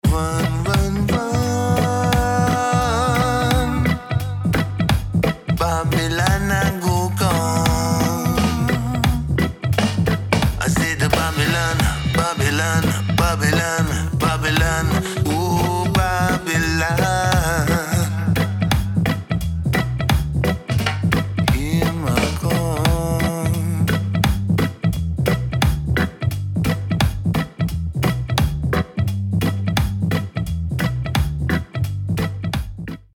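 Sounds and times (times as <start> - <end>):
reggae music: 0.0 - 33.1.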